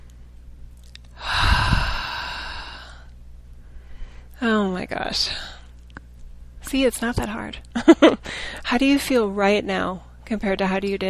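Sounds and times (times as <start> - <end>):
deep breath during a guided spiritual exercise: 1.2 - 4.3, 8.3 - 8.6
speech: 4.5 - 5.6, 6.7 - 11.0.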